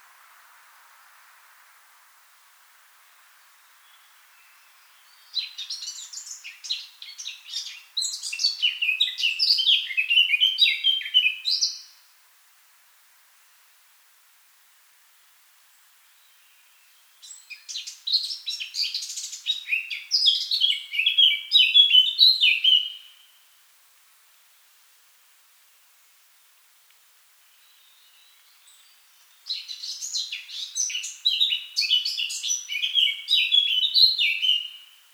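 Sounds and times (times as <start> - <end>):
Eurasian blackcap Sylvia atricapilla giving warbled phrases: 3.6 - 12.0, 17.2 - 23.2, 27.6 - 35.0.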